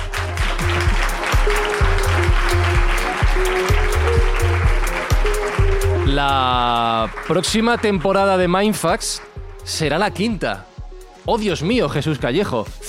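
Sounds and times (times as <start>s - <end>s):
audience applause: 0.0s - 9.3s
speech: 6.1s - 12.8s.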